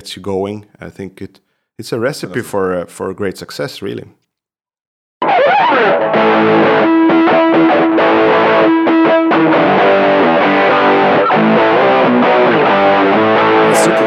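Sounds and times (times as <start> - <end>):
speech: 0.0 - 4.2, 5.4 - 10.0, 11.4 - 14.0
distorted rock guitar riff in a minor key: 5.2 - 14.0.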